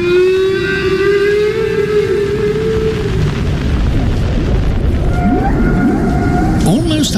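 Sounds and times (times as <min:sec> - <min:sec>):
whale song: 0:00.0 - 0:03.8, 0:04.8 - 0:07.1
low rumbling wash of underwater noise: 0:01.5 - 0:06.9.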